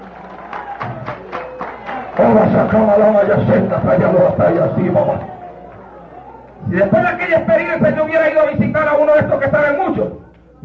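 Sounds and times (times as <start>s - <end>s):
audience applauding: 0.0s - 6.6s
speech: 2.2s - 5.3s, 6.7s - 10.6s.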